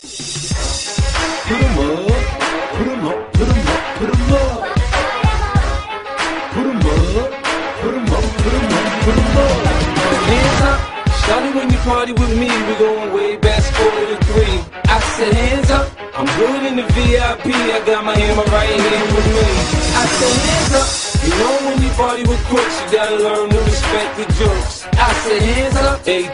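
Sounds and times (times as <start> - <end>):
hip hop beat: 0.0 - 26.3.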